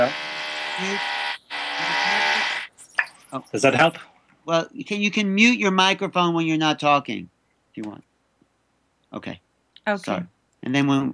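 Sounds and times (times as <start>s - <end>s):
speech: 0.0s - 1.2s, 3.3s - 8.1s, 9.1s - 11.1s
drilling: 0.0s - 2.7s.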